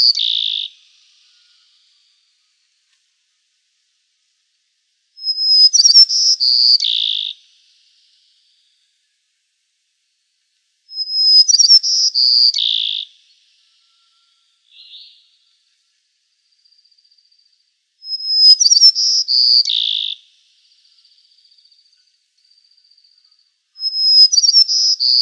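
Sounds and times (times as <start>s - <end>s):
white-crowned sparrow song: 0.0s - 2.4s, 5.2s - 7.4s, 10.9s - 15.4s, 16.6s - 25.2s.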